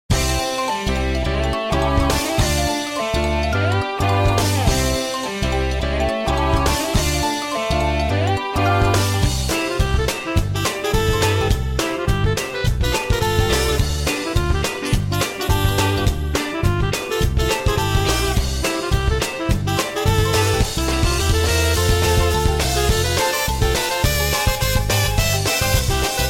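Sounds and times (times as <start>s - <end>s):
athletic background music: 0.1s - 26.2s.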